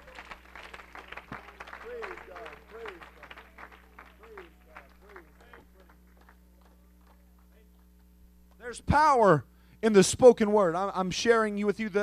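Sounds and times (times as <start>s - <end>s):
audience clapping hands: 0.0s - 8.7s
speech: 8.7s - 12.0s.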